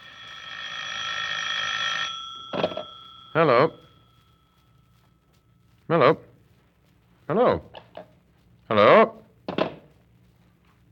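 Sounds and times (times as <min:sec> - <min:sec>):
telephone bell ringing: 0:00.0 - 0:05.2
speech: 0:03.4 - 0:03.8, 0:05.9 - 0:06.2.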